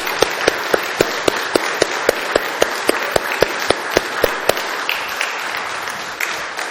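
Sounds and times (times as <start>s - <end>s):
applause in church: 0.0s - 6.6s.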